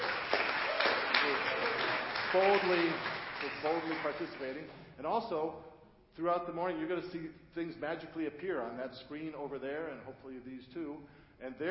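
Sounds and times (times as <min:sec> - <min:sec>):
audience applause for the helpers at a live event: 0:00.0 - 0:04.8
speech: 0:02.3 - 0:11.6.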